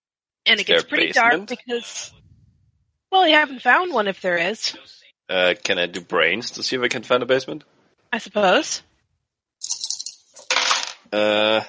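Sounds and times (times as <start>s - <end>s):
speech: 0.5s - 2.2s, 3.1s - 8.9s, 11.1s - 11.6s
dice being rolled: 9.6s - 11.1s.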